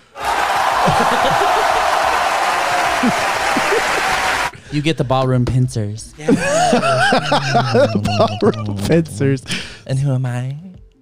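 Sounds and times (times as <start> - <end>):
crowd whooping and shouting: 0.1 - 4.5
applause: 0.2 - 4.5
laughter: 0.2 - 4.5, 6.2 - 9.1
speech: 3.0 - 3.2, 4.7 - 10.6.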